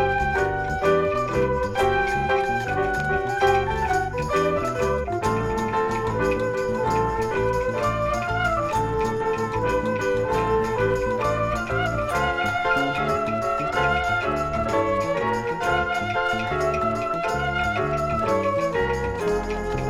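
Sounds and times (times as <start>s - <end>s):
piano: 0.0s - 19.8s
choir singing: 12.1s - 19.1s.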